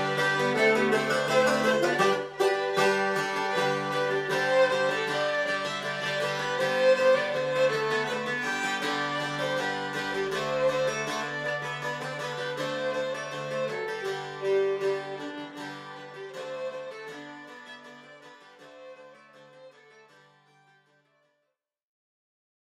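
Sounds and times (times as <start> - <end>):
Bündner polka music: 0.0 - 17.2.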